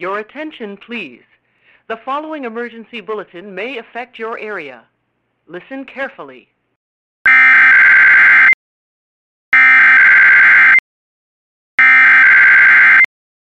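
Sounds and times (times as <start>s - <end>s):
speech: 0.0s - 1.3s, 1.9s - 4.9s, 5.5s - 6.5s
NOAA weather radio warning alarm tone: 7.3s - 8.6s, 9.6s - 10.8s, 11.8s - 13.1s.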